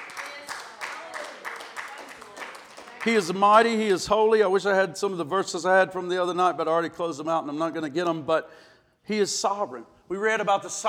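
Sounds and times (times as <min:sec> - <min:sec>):
audience clapping: 0:00.0 - 0:03.8
speech: 0:03.0 - 0:10.8.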